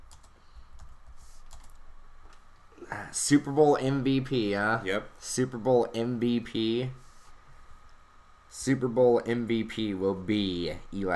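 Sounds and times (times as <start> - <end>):
low steady hum: 0.0 - 11.1
typing on a computer keyboard into a Microsoft Word document: 0.1 - 1.8
speech: 3.0 - 7.0, 8.6 - 11.1.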